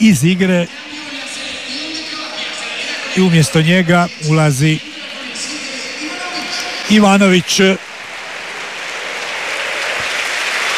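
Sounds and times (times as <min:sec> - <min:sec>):
speech: 0:00.0 - 0:01.0, 0:03.2 - 0:05.5, 0:06.9 - 0:07.9
football crowd applauding substituted footballer Ivan Perišić: 0:06.3 - 0:10.7.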